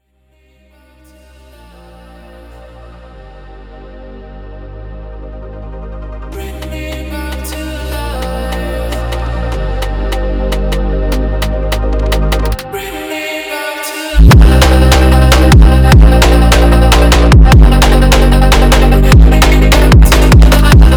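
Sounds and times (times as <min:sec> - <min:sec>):
phonk music: 0:05.2 - 0:20.9.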